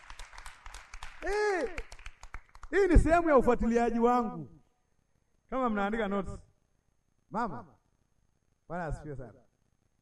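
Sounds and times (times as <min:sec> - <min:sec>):
church congregation hand claps: 0:00.0 - 0:03.1
speech: 0:01.2 - 0:01.9, 0:02.7 - 0:04.6, 0:05.5 - 0:06.5, 0:07.3 - 0:07.8, 0:08.7 - 0:09.4.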